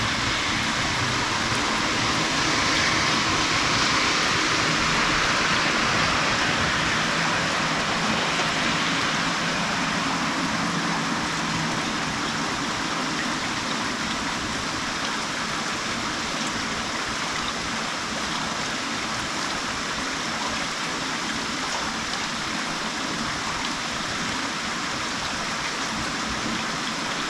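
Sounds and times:
rain: 0:00.0 - 0:27.2.

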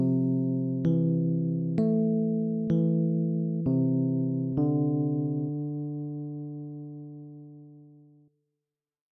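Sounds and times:
background music: 0:00.0 - 0:05.8.

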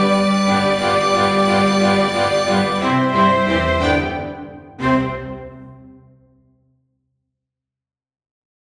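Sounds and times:
waltz music: 0:00.0 - 0:06.3.

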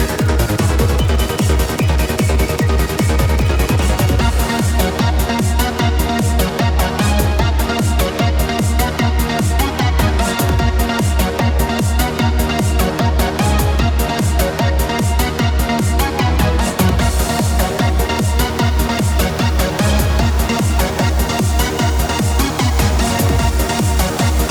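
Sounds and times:
loopable 150 bpm trance music for a boss battle: 0:00.0 - 0:24.4.

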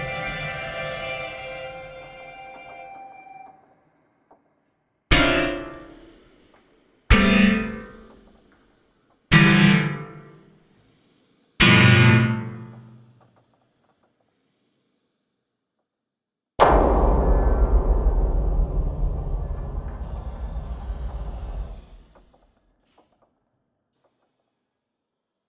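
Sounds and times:
piano hits: 0:00.0 - 0:03.5, 0:05.1 - 0:06.2, 0:07.1 - 0:08.1, 0:09.3 - 0:10.4, 0:11.6 - 0:13.0, 0:16.6 - 0:22.0.

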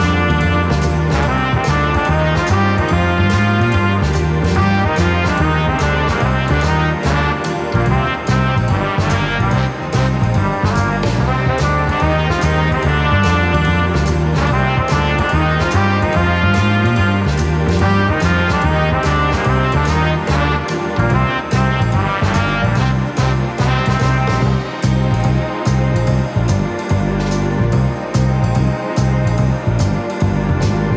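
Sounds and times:
loopable dungeon theme game music: 0:00.0 - 0:30.9.

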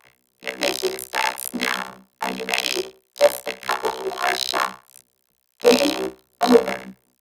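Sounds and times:
robot: 0:00.6 - 0:04.5, 0:05.6 - 0:06.9.

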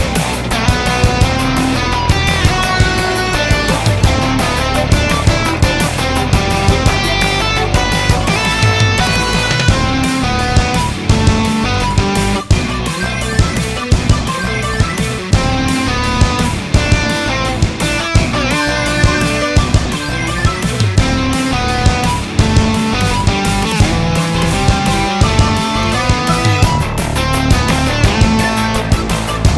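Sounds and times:
uplifting electric guitar and synthesizer music at 170 bpm: 0:00.0 - 0:29.5.

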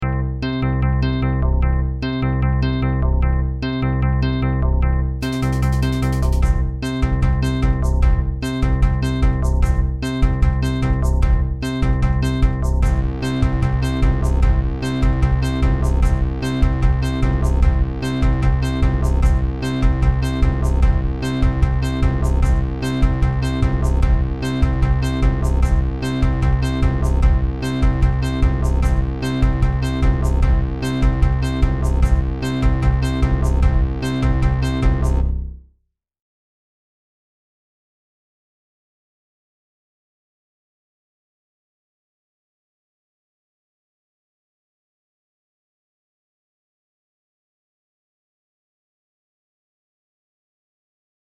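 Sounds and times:
platformer game theme music: 0:00.0 - 0:35.6.

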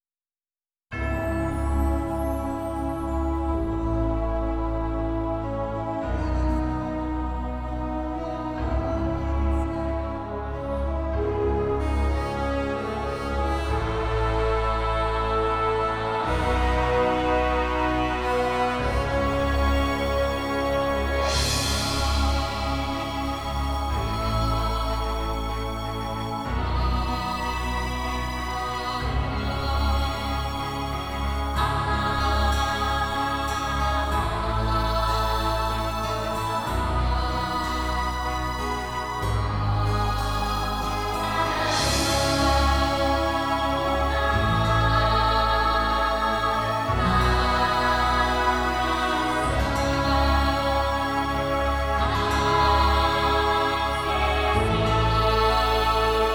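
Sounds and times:
orchestral music: 0:01.0 - 0:56.3.

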